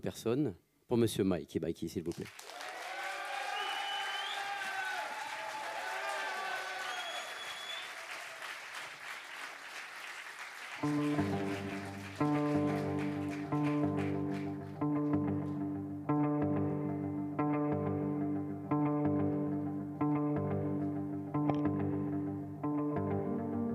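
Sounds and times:
speech: 0.0s - 2.6s, 10.8s - 11.4s
huge stadium crowd applause: 2.1s - 14.8s
stadium crowd whooping cheers: 2.4s - 8.9s
steady music: 10.8s - 23.7s.

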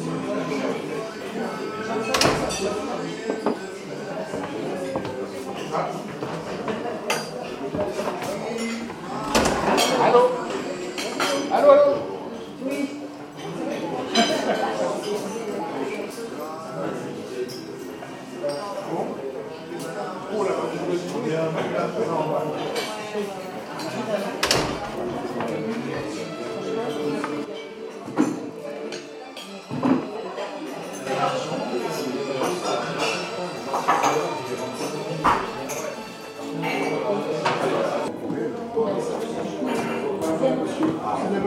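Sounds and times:
dishes and glasses clinking: 0.0s - 16.6s, 22.6s - 38.1s
murmur of overlapping voices at Chez Raoul bistro in Nîmes: 0.0s - 41.4s.

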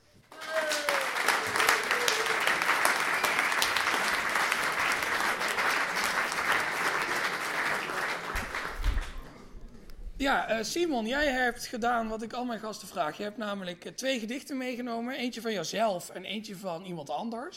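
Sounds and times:
audience applause: 0.3s - 9.4s
speech: 10.2s - 17.5s.

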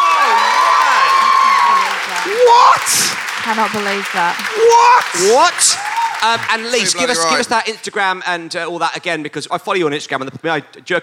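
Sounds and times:
audience applause: 0.0s - 7.7s
speech: 2.8s - 11.0s.

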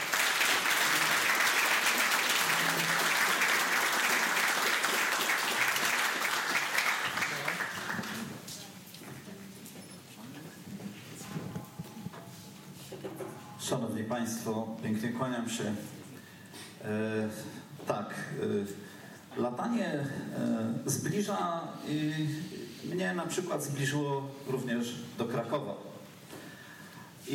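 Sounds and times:
audience applause: 0.0s - 8.5s
room noise: 0.0s - 27.3s
speech: 14.2s - 16.0s, 16.8s - 18.8s, 19.4s - 25.9s.

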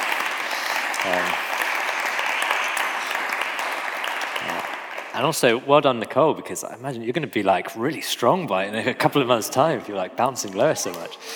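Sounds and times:
applause: 0.0s - 5.6s, 10.4s - 11.3s
speech: 1.0s - 1.5s, 5.2s - 11.3s.

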